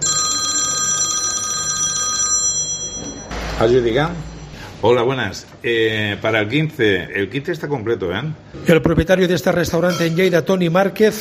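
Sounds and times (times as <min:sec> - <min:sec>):
telephone ringing with a trilling electronic bell: 0:00.0 - 0:04.5
speech: 0:03.6 - 0:11.1.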